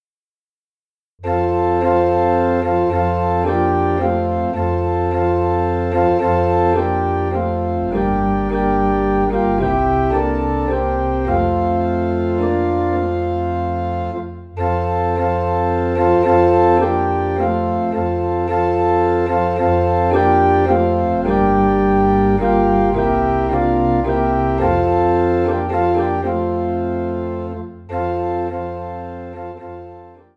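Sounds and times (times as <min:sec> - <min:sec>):
organ playing in F: 0:01.2 - 0:30.3.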